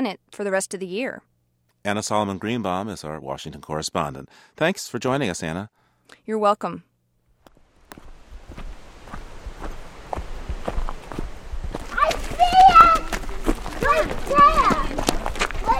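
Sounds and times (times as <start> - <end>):
speech: 0.0 - 6.9
footsteps of a hiker on a wilderness trail in New Hampshire's White Mountains: 7.5 - 15.7.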